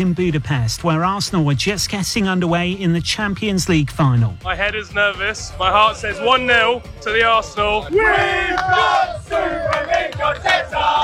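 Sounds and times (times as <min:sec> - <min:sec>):
speech: 0:00.0 - 0:11.0
football supporters chanting in a packed crowd: 0:05.6 - 0:11.0.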